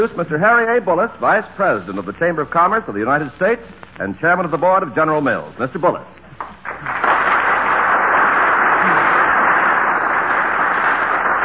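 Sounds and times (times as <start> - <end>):
speech: 0.0 - 6.2
large dinner audience applauding steadily: 6.6 - 11.4.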